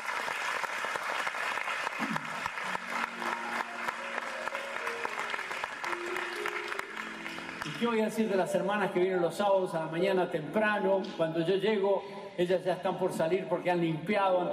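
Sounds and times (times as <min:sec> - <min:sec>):
crowd applauding: 0:00.0 - 0:08.6
faint sustained musical tones: 0:02.8 - 0:08.9
speech: 0:07.8 - 0:14.5.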